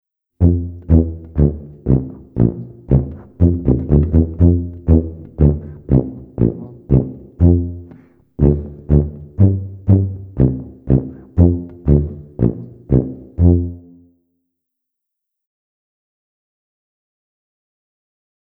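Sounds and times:
tuba: 0.4 - 14.1.

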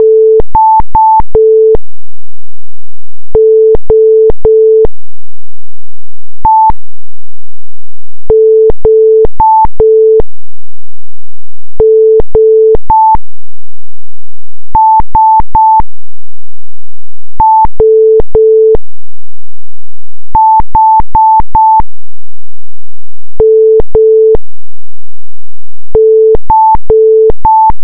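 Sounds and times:
morse code beeps: 0.0 - 1.8, 3.4 - 4.9, 8.3 - 10.2, 11.8 - 13.2, 14.8 - 15.9, 17.4 - 18.8, 20.4 - 21.9, 23.4 - 24.4, 26.0 - 27.8.

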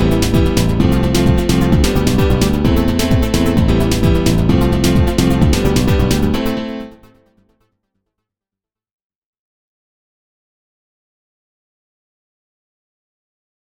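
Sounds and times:
sentimental Antillean music: 0.0 - 7.0.

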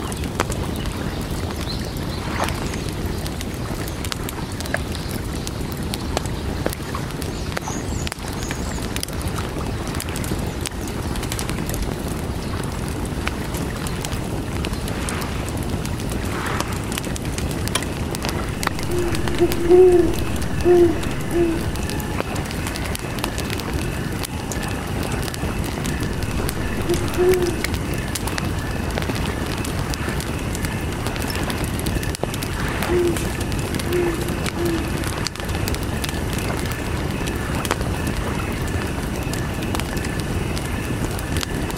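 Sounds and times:
campfire by the lake: 0.0 - 41.7
lake water: 0.0 - 41.7
owls hooting: 18.3 - 23.0, 24.6 - 28.1, 32.8 - 35.1
crickets chirping: 18.4 - 22.4, 25.8 - 28.0.

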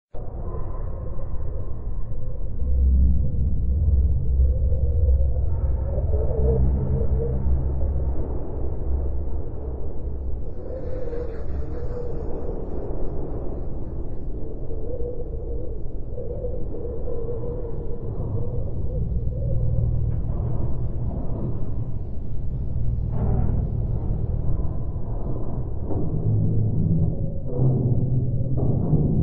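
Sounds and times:
sound of the planet Mars: 0.1 - 29.2.

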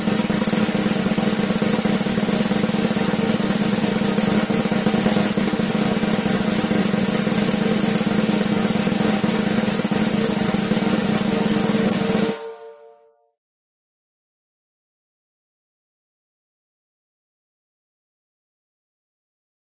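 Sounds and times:
drum roll: 0.0 - 12.9.

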